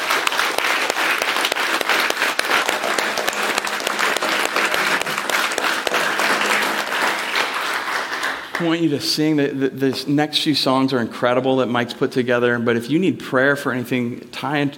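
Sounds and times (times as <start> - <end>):
audience applause: 0.0 - 8.9
speech: 8.6 - 14.7.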